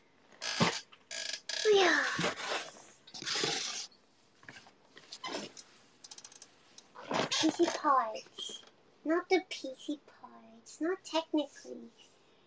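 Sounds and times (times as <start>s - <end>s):
gaming chair scraping and rattling as it is moved: 0.3s - 7.9s
speech: 8.0s - 10.1s, 10.8s - 12.0s.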